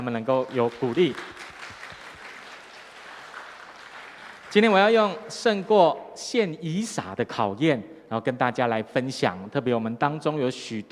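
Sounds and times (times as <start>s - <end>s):
speech: 0.0s - 1.4s, 4.5s - 10.8s
audience clapping: 0.0s - 5.6s.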